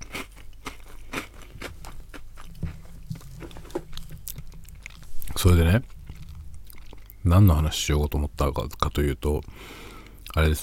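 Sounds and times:
chewing Marie biscuits: 0.0s - 7.2s
speech: 5.4s - 6.0s, 7.3s - 10.6s.

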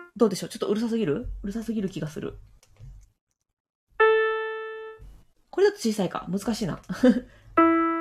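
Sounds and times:
speech: 0.2s - 2.6s, 5.6s - 7.4s
keyboard note middle C: 4.0s - 5.0s, 7.6s - 7.9s.

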